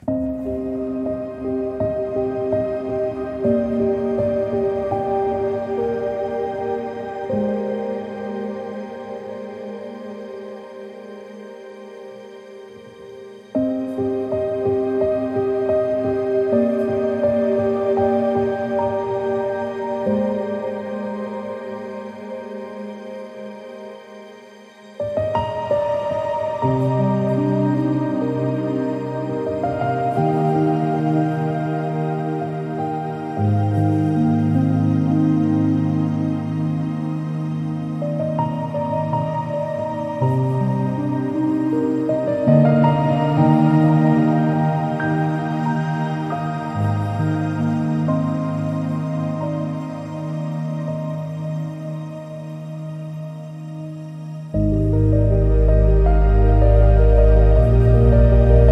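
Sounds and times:
ambient piano: 0.0 - 58.7.

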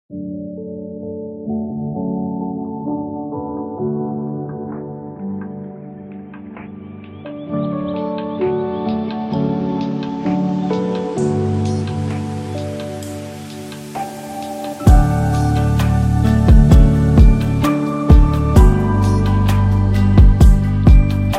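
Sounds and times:
lo-fi chill beat: 0.5 - 21.3.

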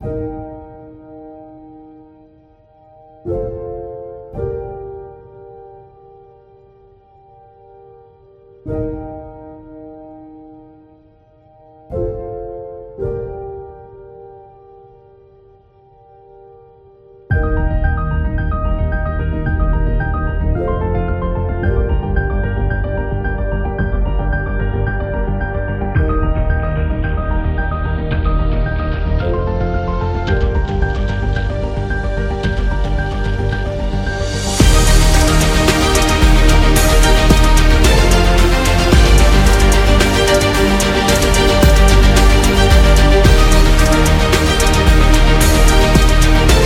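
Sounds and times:
epic motivational beat: 17.3 - 46.6.

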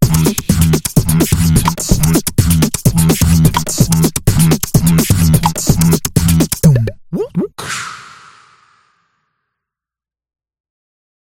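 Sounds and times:
beatbox: 0.0 - 7.6.

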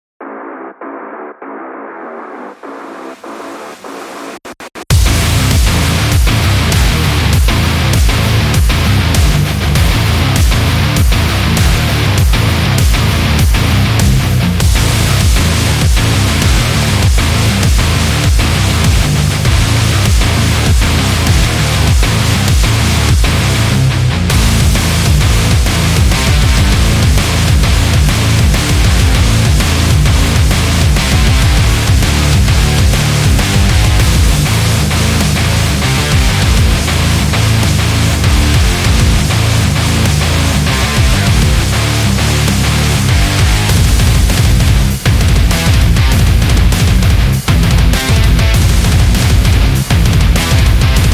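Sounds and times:
aggressive metal music: 0.2 - 51.1.

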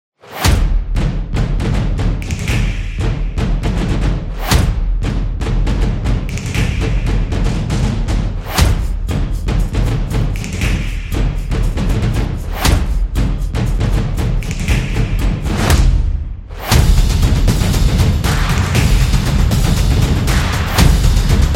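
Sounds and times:
upbeat stomping music: 0.3 - 21.5.

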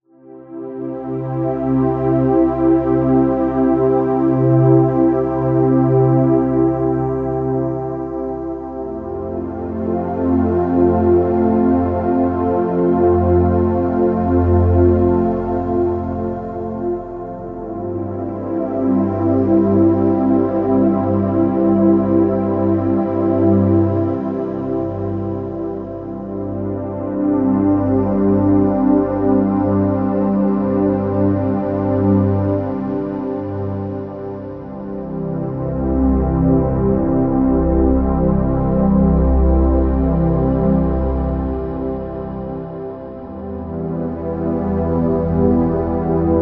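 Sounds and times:
meditation music: 0.0 - 46.4.

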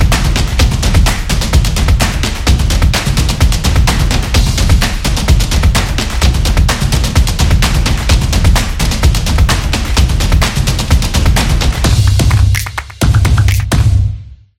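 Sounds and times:
hand claps: 0.0 - 2.4, 11.4 - 13.9
drums: 0.0 - 14.4
foot stomps: 11.9 - 13.9.

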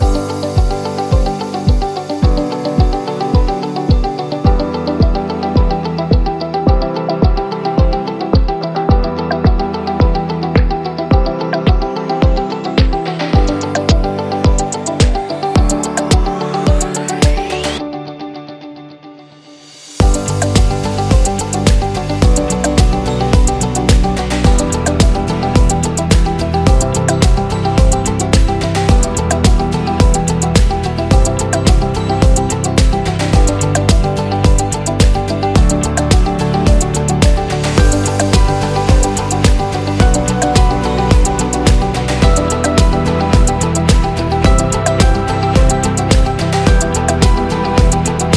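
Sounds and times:
luxury real estate background music: 0.0 - 48.3.

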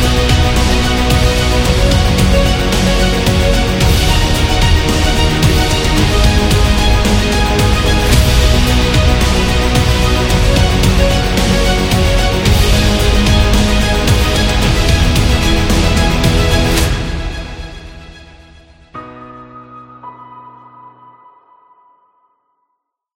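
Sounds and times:
epic award sound: 0.0 - 18.5.

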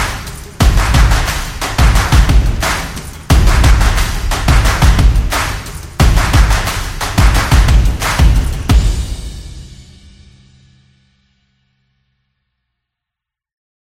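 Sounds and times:
epic stomping percussion: 0.0 - 10.4.

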